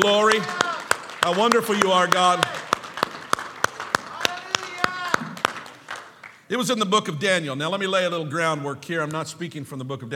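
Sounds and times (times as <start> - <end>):
speech: 0.0 - 0.6, 1.2 - 2.6, 6.5 - 10.1
audience clapping hands: 0.0 - 6.5.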